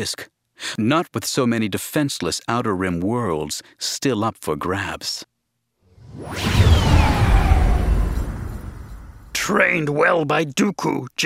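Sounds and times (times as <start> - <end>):
speech: 0.0 - 5.3, 6.1 - 7.2, 9.5 - 11.2
Star Wars starship whoosh jumping into hyperspace: 6.0 - 9.4.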